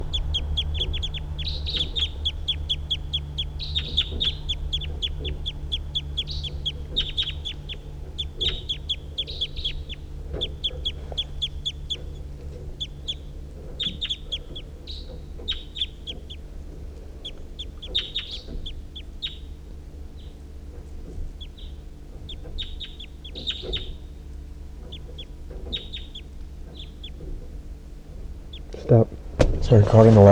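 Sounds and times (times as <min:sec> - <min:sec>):
steady low rumble: 0:00.0 - 0:17.2, 0:28.8 - 0:30.2
wild birds calling in chirps and clucks: 0:00.0 - 0:30.2
speech: 0:29.7 - 0:30.2.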